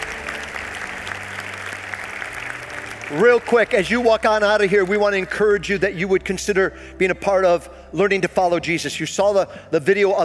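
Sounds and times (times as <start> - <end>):
audience applauding: 0.0 - 5.6
speech: 3.1 - 10.2.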